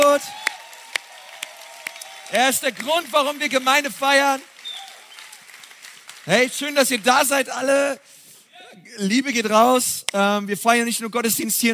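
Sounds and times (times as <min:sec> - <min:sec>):
audience hand claps: 0:00.0 - 0:07.1
speech: 0:00.2 - 0:00.5, 0:02.3 - 0:04.5, 0:06.3 - 0:08.1, 0:08.8 - 0:11.7.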